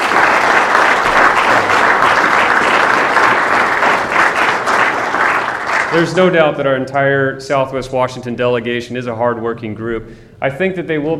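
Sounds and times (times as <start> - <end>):
audience applause: 0.0 - 6.4
speech: 6.0 - 11.1.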